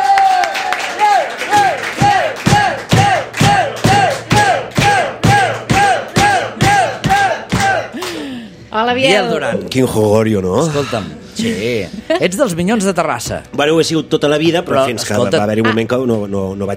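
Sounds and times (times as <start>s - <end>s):
loud audience applause: 0.0s - 8.4s
speech: 9.0s - 16.7s.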